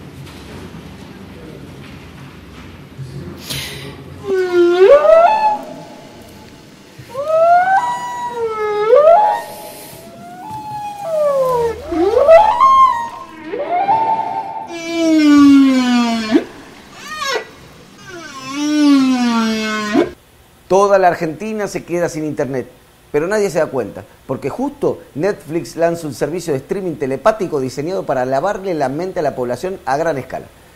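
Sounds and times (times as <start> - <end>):
whale vocalizations: 4.2 - 20.2
speech: 20.7 - 30.6.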